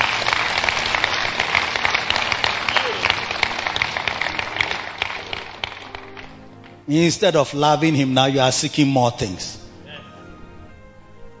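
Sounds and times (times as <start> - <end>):
audience clapping: 0.0 - 6.9
speech: 6.9 - 9.6.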